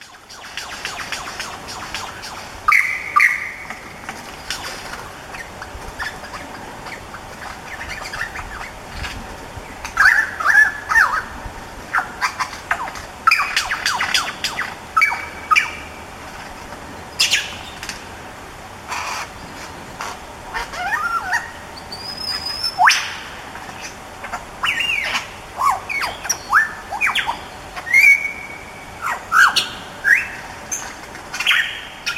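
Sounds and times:
mimicking songbird imitating calls of other animal species: 0:00.0 - 0:15.9, 0:18.9 - 0:32.1
low hiss: 0:00.0 - 0:32.1.

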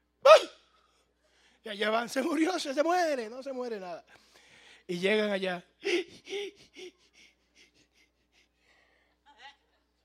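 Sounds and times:
speech: 0:01.7 - 0:04.3, 0:04.9 - 0:07.0
man imitating hyperventilation panting of a hysteria attack: 0:05.8 - 0:08.7.

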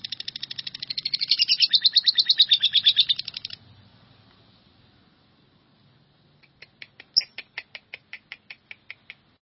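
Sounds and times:
bird chattering trill: 0:00.0 - 0:03.6, 0:06.4 - 0:09.2.

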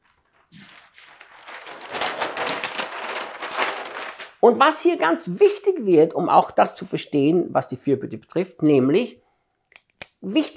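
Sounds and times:
page of paper being turned: 0:00.0 - 0:04.5
speech: 0:04.4 - 0:09.2, 0:10.2 - 0:10.5.

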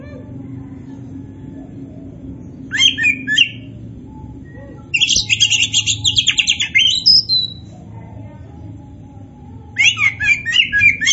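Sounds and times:
Oriental magpie-robin chattering and whistling: 0:02.0 - 0:07.8, 0:09.7 - 0:11.1.

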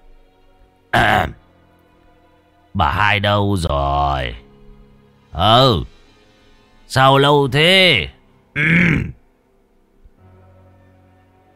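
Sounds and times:
old man's rattling cough: 0:01.0 - 0:01.4, 0:08.6 - 0:09.2
speech: 0:01.0 - 0:01.4, 0:02.8 - 0:04.4, 0:05.4 - 0:05.9, 0:06.9 - 0:09.2.

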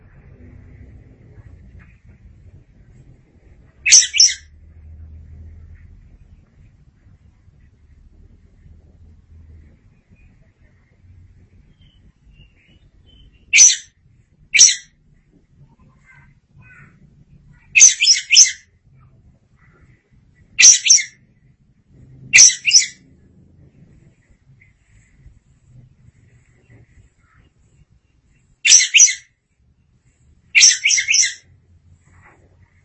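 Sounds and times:
Oriental magpie-robin song: 0:03.8 - 0:04.5, 0:11.7 - 0:13.9, 0:14.5 - 0:14.9, 0:17.6 - 0:18.6, 0:20.6 - 0:21.2, 0:22.4 - 0:23.0, 0:28.6 - 0:29.3, 0:30.6 - 0:31.5.

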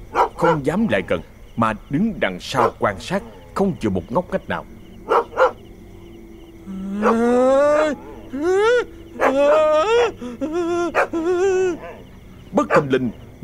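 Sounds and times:
dog barking with its muzzle through iron bars at a door: 0:00.1 - 0:01.3, 0:02.4 - 0:03.6, 0:05.0 - 0:05.7, 0:07.0 - 0:08.2, 0:09.2 - 0:10.2, 0:10.9 - 0:11.2, 0:11.8 - 0:13.2
speech: 0:00.4 - 0:04.8, 0:07.0 - 0:08.6, 0:12.6 - 0:13.4.

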